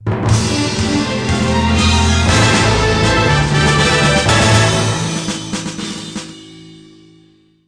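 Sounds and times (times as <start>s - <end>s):
stage clear jingle: 0.3s - 6.2s.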